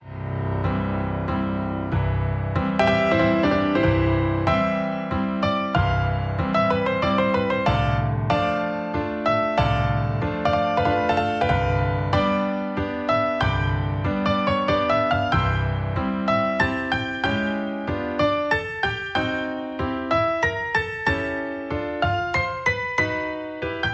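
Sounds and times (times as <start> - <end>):
piano concerto: 0.0 - 23.9.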